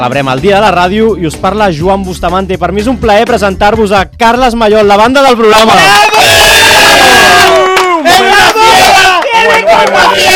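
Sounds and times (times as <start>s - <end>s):
speech: 0.0s - 6.2s, 9.7s - 10.3s
applause sound effect: 6.8s - 10.3s.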